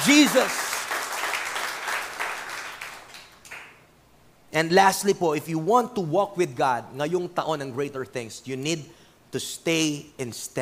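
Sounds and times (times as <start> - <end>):
church congregation applauding: 0.0 - 3.8
speech: 0.1 - 0.6, 4.5 - 10.6.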